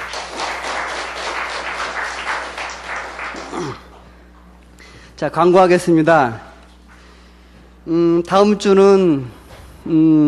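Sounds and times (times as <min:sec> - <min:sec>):
audience applause: 0:00.0 - 0:04.0
speech: 0:05.2 - 0:06.5, 0:07.8 - 0:10.2.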